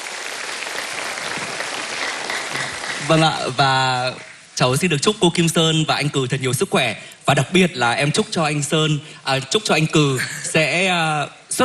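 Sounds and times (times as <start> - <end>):
applause for a mother and her son at an event: 0.0 - 4.5
speech: 3.1 - 11.6.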